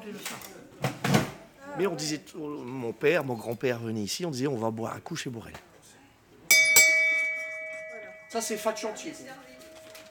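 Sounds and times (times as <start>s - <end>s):
speech: 0.1s - 0.8s, 1.8s - 5.7s, 8.3s - 9.5s
bell of the bar Le Phare in Dunkerque clanging and ringing: 6.5s - 10.0s.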